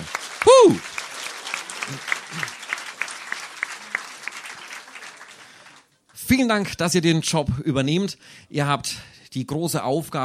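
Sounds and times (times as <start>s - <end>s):
audience applause: 0.0s - 5.9s
loud vocal whoop: 0.4s - 0.9s
speech: 0.4s - 0.9s, 6.4s - 10.2s.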